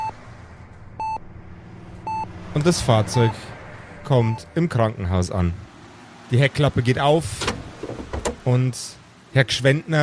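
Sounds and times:
patient monitor beeping: 1.0s - 1.2s, 2.0s - 2.3s
speech: 2.6s - 5.7s, 6.3s - 7.5s, 8.4s - 10.0s.

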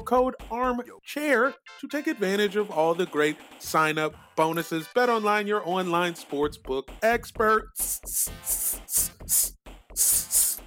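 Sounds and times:
speech: 0.1s - 10.5s
voice making a hissing S sound: 7.8s - 10.6s.

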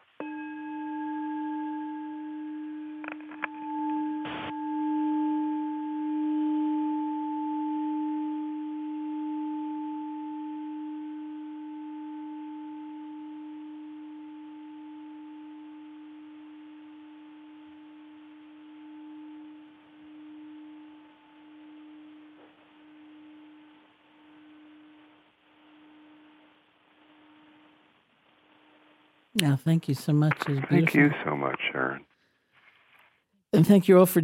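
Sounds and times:
bell ringing: 0.2s - 13.6s
speech: 29.4s - 32.1s, 33.6s - 34.2s.

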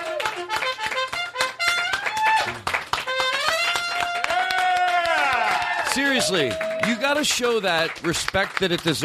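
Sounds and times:
bright horn melody: 0.0s - 4.6s
hand claps: 0.0s - 9.0s
speech: 6.0s - 9.0s.

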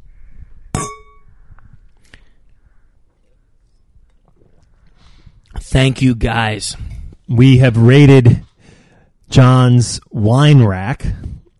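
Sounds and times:
wine glasses clinking in a toast: 0.8s - 1.2s
speech: 5.7s - 8.5s, 9.3s - 11.3s.

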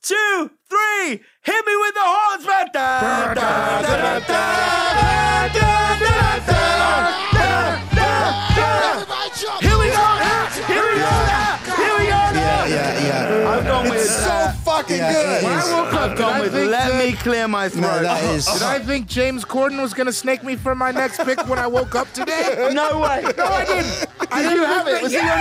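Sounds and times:
speech: 0.0s - 6.0s, 14.9s - 25.4s
crowd yelling and cheering: 3.0s - 18.6s
laughter: 3.0s - 25.4s.

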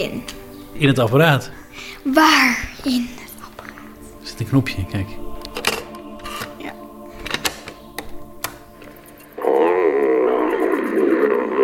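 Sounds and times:
speech: 0.0s - 3.2s, 4.3s - 5.3s
wolf growling: 9.1s - 11.6s.

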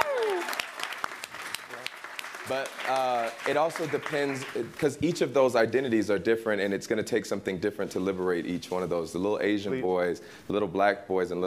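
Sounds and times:
scattered hand claps: 0.0s - 4.6s
speech: 2.5s - 11.4s.

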